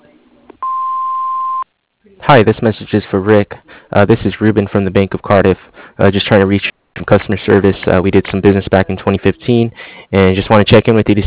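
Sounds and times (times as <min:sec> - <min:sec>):
answering machine beep: 0:00.6 - 0:01.6
recorded voice greeting: 0:02.0 - 0:11.2
speech: 0:02.3 - 0:11.2.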